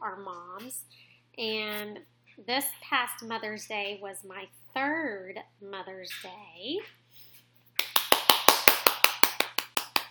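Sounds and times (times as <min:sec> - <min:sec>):
speech: 0:00.0 - 0:07.0
one person clapping hands: 0:07.8 - 0:10.0.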